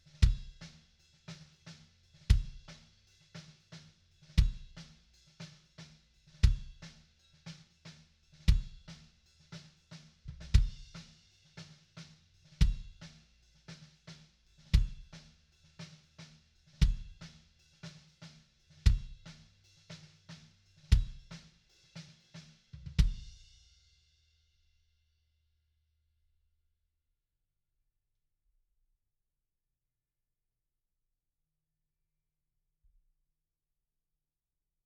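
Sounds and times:
kick drum: 0.2 - 0.6, 2.3 - 2.8, 4.4 - 4.8, 6.4 - 6.8, 8.5 - 8.9, 10.3 - 11.0, 12.6 - 13.0, 14.7 - 15.2, 16.8 - 17.2, 18.8 - 19.4, 20.9 - 21.4, 22.9 - 23.4.

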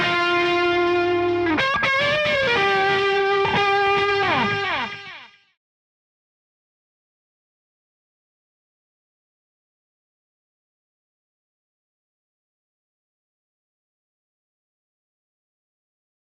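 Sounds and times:
bass guitar: 0.0 - 5.3.

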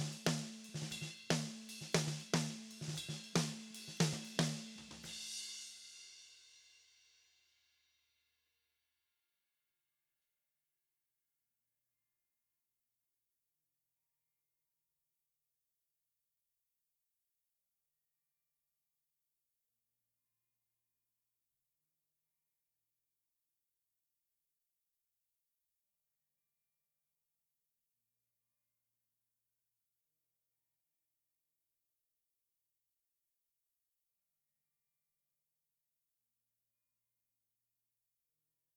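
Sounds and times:
snare drum: 0.0 - 5.9.

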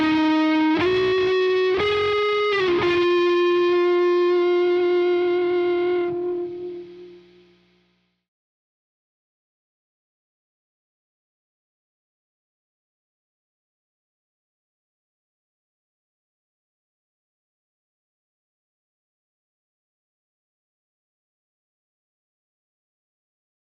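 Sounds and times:
bass guitar: 0.0 - 7.5.

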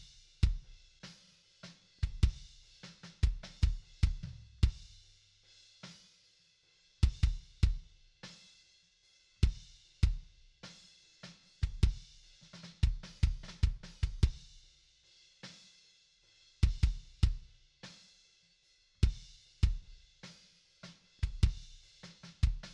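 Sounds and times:
kick drum: 0.0 - 0.8, 2.0 - 2.6, 3.2 - 5.0, 7.0 - 8.0, 9.4 - 10.4, 11.6 - 12.2, 12.8 - 14.5, 16.6 - 17.6, 19.0 - 20.0, 21.2 - 21.8, 22.4 - 22.7.

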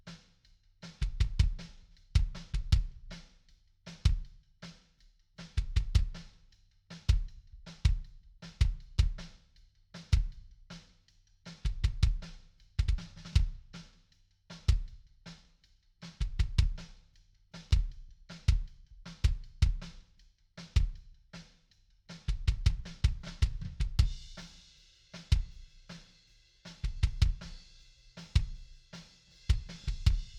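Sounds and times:
kick drum: 1.0 - 3.2, 4.0 - 4.3, 5.5 - 6.2, 7.1 - 9.3, 10.1 - 10.4, 11.6 - 13.7, 14.6 - 15.0, 16.2 - 16.9, 17.7 - 20.0, 20.8 - 21.0, 22.3 - 24.4, 26.8 - 27.6, 28.3 - 28.6, 29.5 - 30.3.

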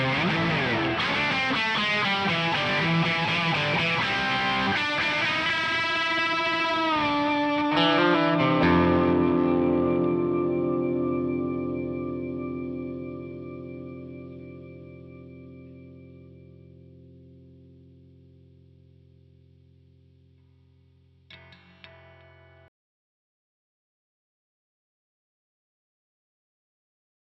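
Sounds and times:
bass guitar: 0.0 - 20.2.

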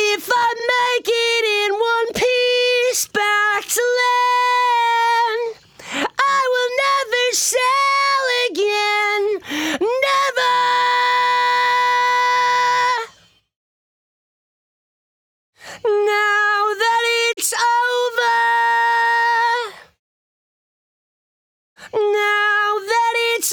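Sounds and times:
lead vocals: 0.0 - 13.2, 15.8 - 19.9, 21.9 - 23.5.

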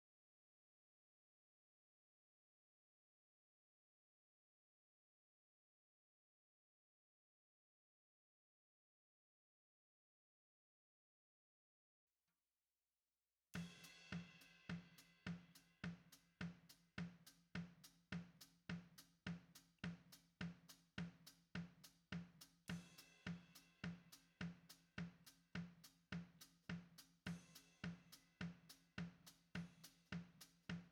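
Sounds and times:
snare drum: 13.6 - 30.8.

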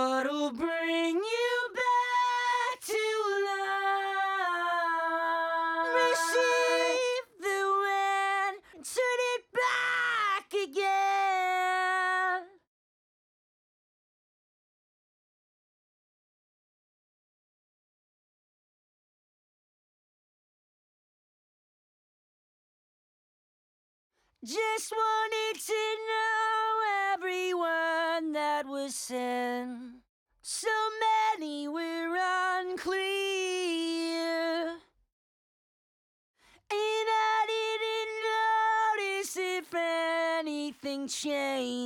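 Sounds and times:
main vocals: 0.0 - 12.6, 24.4 - 34.8, 36.7 - 41.8.

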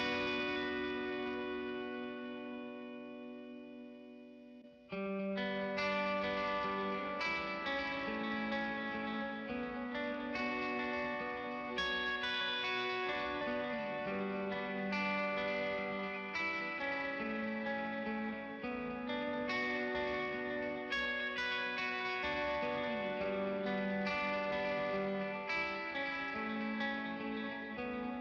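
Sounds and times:
guitars: 0.0 - 28.1.

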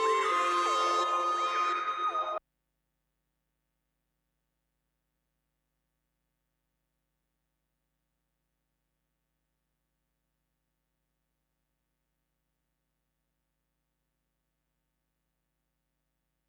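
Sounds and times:
synth: 0.0 - 2.4.

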